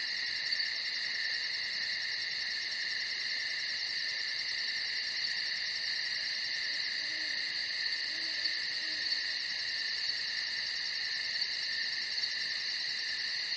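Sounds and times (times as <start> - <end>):
crickets trilling chorus in a night forest: 0.0 - 13.5.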